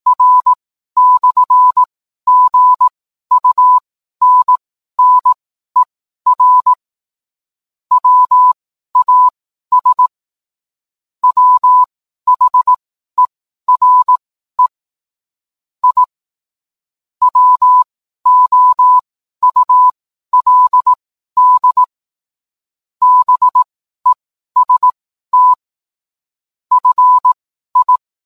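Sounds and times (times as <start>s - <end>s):
morse code beeps: 0.1s - 6.8s, 7.9s - 10.1s, 11.2s - 14.8s, 15.8s - 16.1s, 17.2s - 21.9s, 23.0s - 25.7s, 26.7s - 28.0s.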